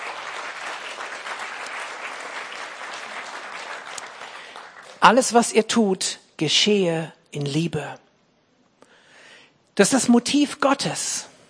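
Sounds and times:
audience applause: 0.0s - 5.3s
speech: 5.0s - 8.0s, 9.8s - 11.3s.

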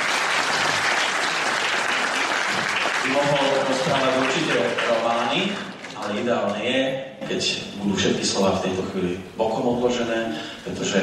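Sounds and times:
audience applause: 0.0s - 6.3s
speech: 3.2s - 11.0s.

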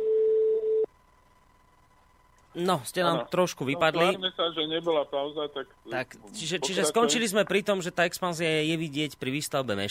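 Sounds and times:
telephone redialing tone: 0.0s - 0.9s
faint thin higher hum: 0.0s - 9.8s
speech: 2.6s - 9.8s.

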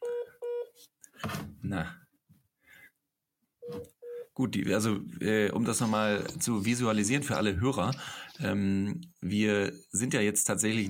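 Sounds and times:
speech: 0.8s - 2.0s, 3.7s - 10.8s
call connection beeping: 3.6s - 4.3s.

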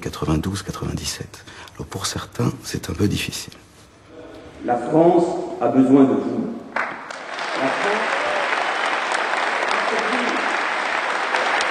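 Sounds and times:
speech: 0.0s - 3.7s, 4.6s - 6.5s
audience applause after a speech: 6.8s - 11.6s.

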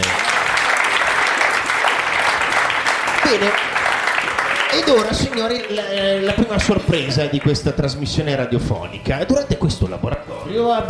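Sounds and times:
applause from a group: 0.0s - 8.0s
speech: 3.3s - 3.7s, 4.7s - 10.8s.

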